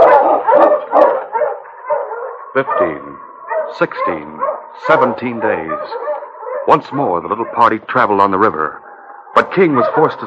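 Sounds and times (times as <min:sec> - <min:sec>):
pack of husky sled dogs barking and yipping: 0:00.0 - 0:10.2
speech: 0:02.6 - 0:08.8, 0:09.4 - 0:10.2.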